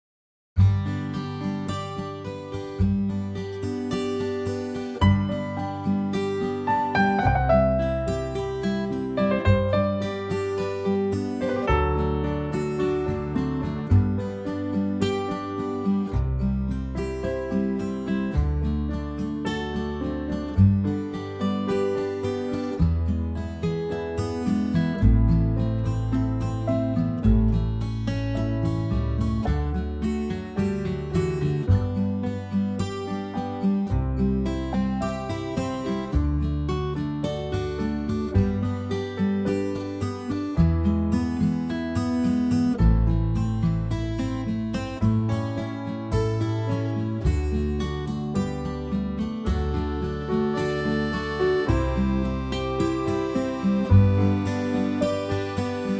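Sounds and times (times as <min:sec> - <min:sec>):
acoustic guitar in G: 0:00.6 - 0:55.9.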